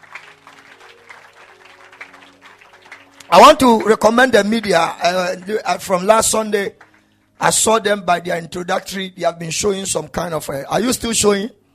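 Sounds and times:
audience clapping: 0:00.0 - 0:07.8
speech: 0:03.3 - 0:06.8, 0:07.4 - 0:11.6.

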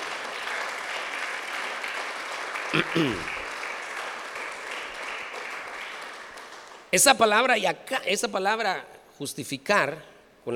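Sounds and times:
crowd applauding: 0:00.0 - 0:06.9
speech: 0:02.7 - 0:03.4, 0:06.9 - 0:10.5.

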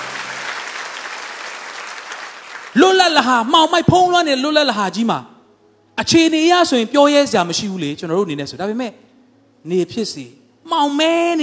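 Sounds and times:
church congregation clapping hands during a Sunday sermon: 0:00.0 - 0:03.6
speech: 0:02.8 - 0:05.3, 0:06.0 - 0:09.0, 0:09.6 - 0:11.4.

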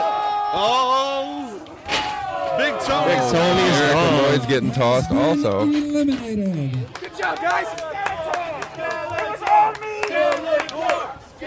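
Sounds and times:
large crowd cheering and shouting: 0:00.0 - 0:11.4
speech: 0:00.5 - 0:01.1, 0:02.6 - 0:07.9
crowd clapping: 0:06.4 - 0:11.4.

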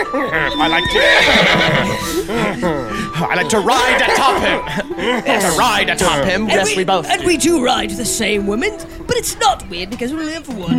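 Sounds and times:
horse neighing: 0:00.0 - 0:02.9
laughter: 0:00.0 - 0:07.6
speech: 0:00.1 - 0:10.7.

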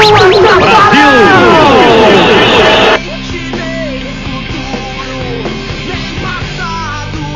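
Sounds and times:
football crowd shouting and chanting in stadium: 0:00.2 - 0:03.0.

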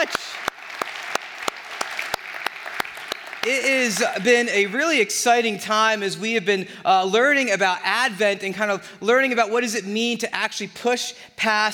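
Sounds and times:
crowd applause: 0:00.0 - 0:04.0
speech: 0:03.4 - 0:11.7.

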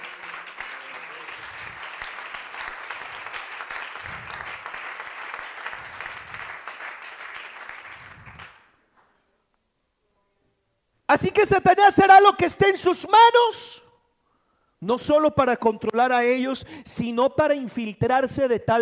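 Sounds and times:
audience applauding: 0:00.0 - 0:08.7
speech: 0:11.1 - 0:13.8, 0:14.8 - 0:18.7.

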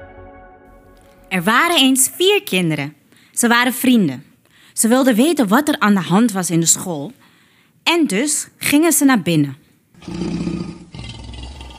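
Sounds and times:
speech: 0:01.3 - 0:07.3, 0:07.9 - 0:11.1
lion roaring: 0:10.0 - 0:11.7.

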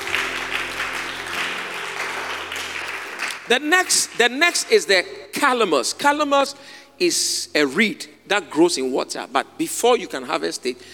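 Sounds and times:
audience clapping hands: 0:00.0 - 0:04.7
speech: 0:03.5 - 0:10.9.

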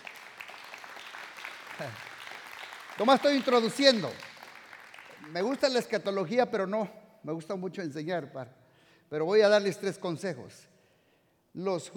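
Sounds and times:
audience applause: 0:00.0 - 0:05.8
speech: 0:01.8 - 0:02.1, 0:03.0 - 0:04.3, 0:05.2 - 0:10.7, 0:11.6 - 0:11.9.

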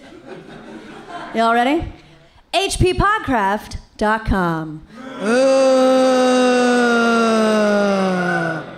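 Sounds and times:
speech: 0:01.3 - 0:05.8
live audience zombie moan: 0:05.0 - 0:08.7.

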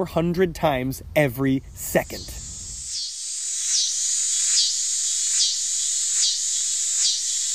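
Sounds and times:
speech: 0:00.0 - 0:02.4
cicada buzzing song: 0:02.0 - 0:07.5.

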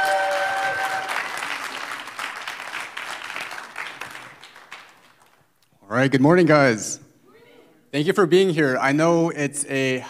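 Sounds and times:
audience applause: 0:00.0 - 0:05.4
speech: 0:05.9 - 0:07.0, 0:07.9 - 0:10.0.

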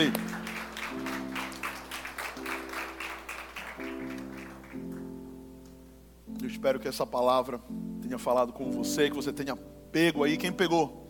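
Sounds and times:
audience applause: 0:00.0 - 0:05.1
speech: 0:06.6 - 0:11.0.

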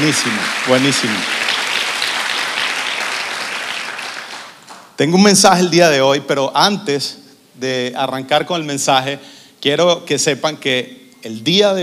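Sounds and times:
speech: 0:00.0 - 0:01.5, 0:05.0 - 0:11.8
audience applause: 0:00.0 - 0:05.0.

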